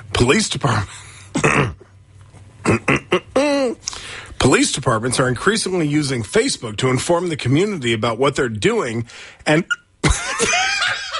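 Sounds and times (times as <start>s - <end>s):
speech: 0.2s - 1.7s, 2.7s - 3.2s, 4.4s - 9.8s
person hiccuping: 1.4s - 1.9s, 2.6s - 3.8s
laughter: 10.0s - 11.1s.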